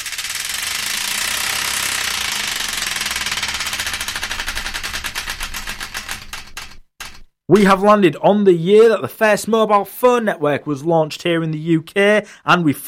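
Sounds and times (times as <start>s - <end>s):
prize wheel spinning and clicking: 0.0s - 7.3s
speech: 7.5s - 12.8s.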